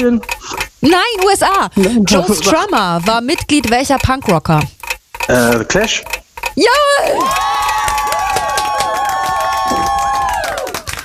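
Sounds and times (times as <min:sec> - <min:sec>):
speech: 0:00.0 - 0:07.6
crowd applause: 0:07.1 - 0:11.0.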